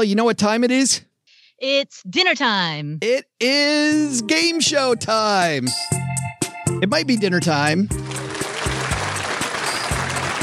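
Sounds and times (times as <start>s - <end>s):
speech: 0.0s - 6.0s, 6.8s - 8.2s
crowd cheering and applause sound effect at a game show segment: 8.0s - 10.4s.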